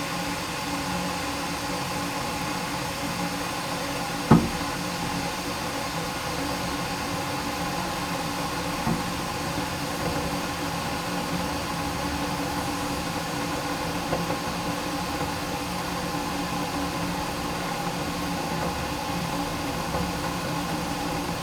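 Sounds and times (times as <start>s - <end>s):
kettle: 0.1s - 21.3s.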